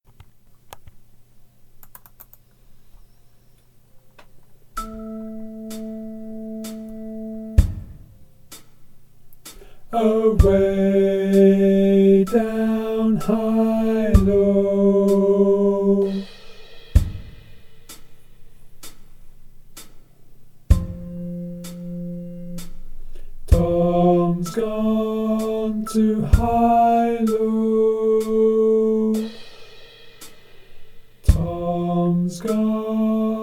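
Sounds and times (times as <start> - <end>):
tenor singing: 9.6 - 16.5, 23.4 - 29.6, 31.2 - 33.4.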